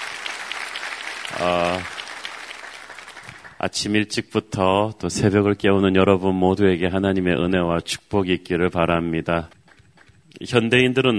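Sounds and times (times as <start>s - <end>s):
audience applause: 0.0s - 3.6s
speech: 1.3s - 2.0s, 3.6s - 9.6s, 10.4s - 11.1s.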